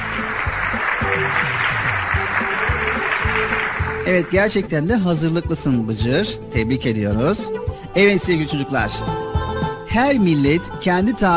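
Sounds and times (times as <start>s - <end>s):
applause: 0.0s - 4.3s
speech: 4.1s - 9.2s, 9.9s - 11.3s.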